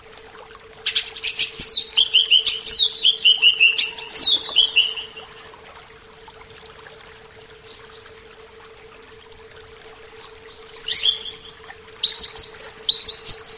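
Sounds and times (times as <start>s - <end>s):
Oriental magpie-robin singing a soft rambling series of whistled notes: 0.9s - 5.2s, 10.2s - 13.5s.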